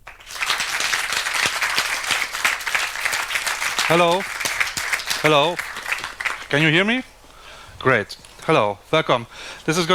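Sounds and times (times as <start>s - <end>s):
audience applause: 0.0s - 7.2s
speech: 3.9s - 4.3s, 5.2s - 5.7s, 6.5s - 7.1s, 7.8s - 9.9s.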